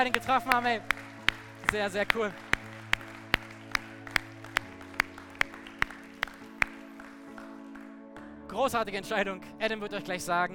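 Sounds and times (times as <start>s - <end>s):
speech: 0.0s - 2.5s, 8.6s - 10.5s
steady clapping: 0.0s - 8.3s.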